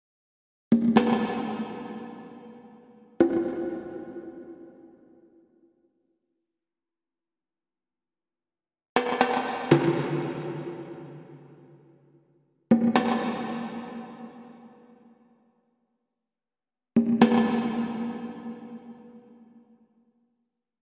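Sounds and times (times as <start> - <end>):
percussion: 0.7 - 6.0, 9.0 - 15.7, 17.0 - 20.4.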